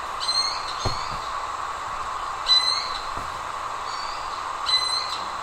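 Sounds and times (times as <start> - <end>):
Eared quetzal giving repeated squealing notes: 0.2 - 1.5, 2.2 - 3.1, 3.8 - 5.3.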